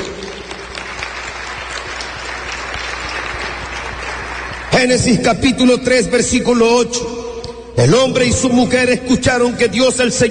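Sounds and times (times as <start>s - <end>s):
audience applause: 0.0s - 5.1s
speech: 4.8s - 7.2s, 7.8s - 10.3s.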